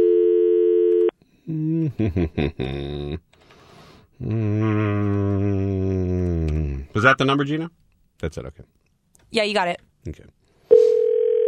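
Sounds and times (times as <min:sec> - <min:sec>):
telephone dial tone: 0:00.0 - 0:01.1, 0:10.7 - 0:11.4
speech: 0:01.5 - 0:03.3, 0:04.2 - 0:10.4.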